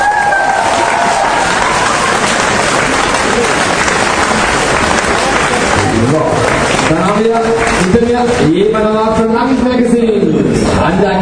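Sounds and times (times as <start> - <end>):
crowd applause: 0.0 - 8.4
speech: 6.1 - 10.2.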